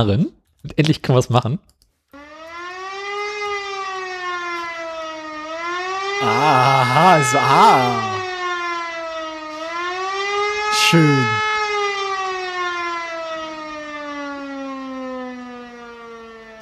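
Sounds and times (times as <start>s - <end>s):
speech: 0.0s - 1.7s, 6.2s - 8.2s, 10.9s - 11.5s
civil defense ABC alarm siren wailing: 2.2s - 16.6s
spoken word: 6.2s - 8.2s, 10.7s - 11.4s.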